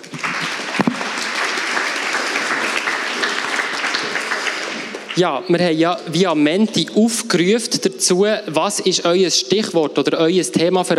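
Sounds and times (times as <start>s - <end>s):
audience applause: 0.0s - 5.4s
speech: 5.2s - 10.9s.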